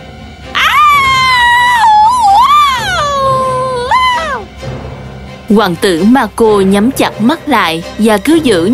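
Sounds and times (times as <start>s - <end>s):
long piercing scream: 0.5s - 4.5s
speech: 5.5s - 8.7s.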